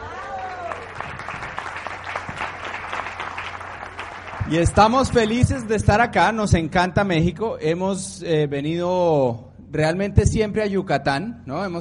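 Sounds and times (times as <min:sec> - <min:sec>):
audience applause: 0:00.0 - 0:05.4
speech: 0:04.5 - 0:11.8.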